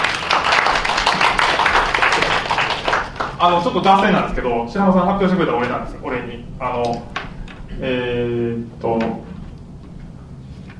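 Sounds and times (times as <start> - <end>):
applause: 0.0 - 4.2
speech: 3.4 - 9.3.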